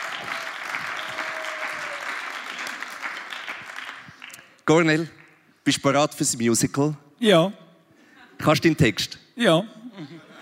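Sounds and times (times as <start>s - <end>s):
audience applause: 0.0s - 4.5s
speech: 4.7s - 7.6s, 8.4s - 10.2s
laughter: 9.8s - 10.3s.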